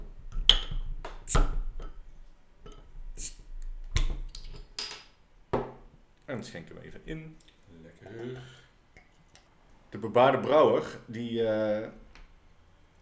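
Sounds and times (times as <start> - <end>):
beer bottle being opened: 0.3 - 2.0, 2.7 - 5.0
speech: 6.3 - 8.6, 9.9 - 12.0.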